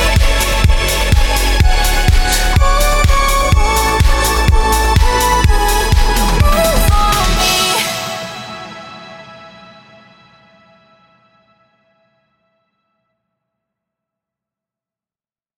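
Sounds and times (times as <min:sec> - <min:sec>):
synthwave music: 0:00.0 - 0:11.2.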